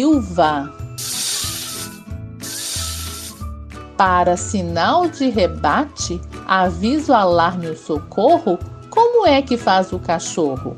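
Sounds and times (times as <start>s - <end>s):
speech: 0.0s - 0.8s, 4.0s - 10.7s
angry snake hissing: 1.0s - 3.5s.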